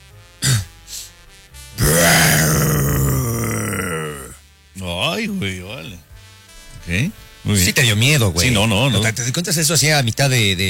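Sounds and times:
person imitating a lion's roar: 1.8s - 4.4s
speech: 5.2s - 5.9s, 6.9s - 10.6s.

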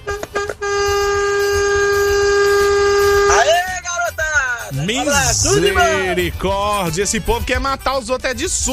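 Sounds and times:
truck air horn honking: 0.0s - 3.6s
speech: 4.9s - 8.7s.

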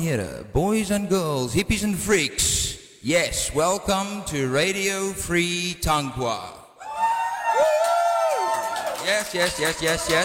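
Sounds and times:
speech: 0.0s - 6.6s, 9.0s - 10.2s
live audience cheering and whooping: 6.8s - 10.2s.

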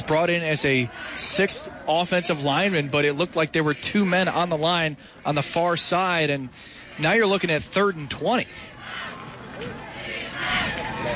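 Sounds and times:
Newfane cheerleaders and crowd cheering: 0.0s - 11.1s
speech: 0.1s - 9.0s.

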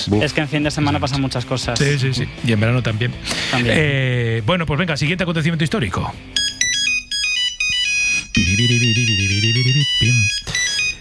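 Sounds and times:
speech: 0.0s - 6.4s
Nokia 3310 mobile phone ringtone: 6.4s - 10.9s.

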